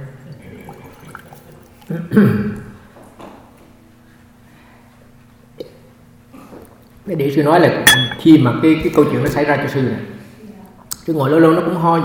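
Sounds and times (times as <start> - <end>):
low steady hum: 0.0 - 11.4
slurping sip of water: 0.4 - 1.9
speech: 1.9 - 2.6, 7.1 - 10.2, 11.1 - 12.0.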